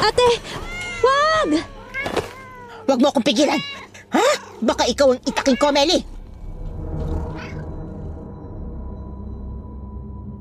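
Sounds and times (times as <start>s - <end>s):
speech: 0.1s - 1.7s, 2.9s - 6.1s
cat meowing: 0.6s - 2.8s, 5.2s - 6.0s
low rumble: 5.6s - 10.3s.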